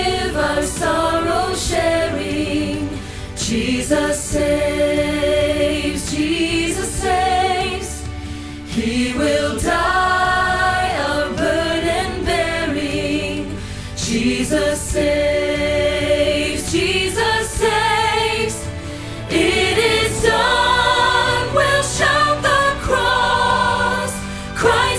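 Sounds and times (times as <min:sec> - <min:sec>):
soprano choir rehearsal part singing: 0:00.0 - 0:24.9.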